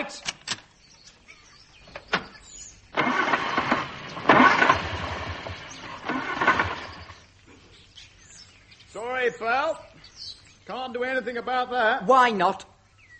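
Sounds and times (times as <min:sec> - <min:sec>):
speech: 0:00.0 - 0:00.3, 0:09.3 - 0:09.9, 0:10.7 - 0:12.7
car engine trying to start, cranking and sputtering: 0:02.3 - 0:07.2.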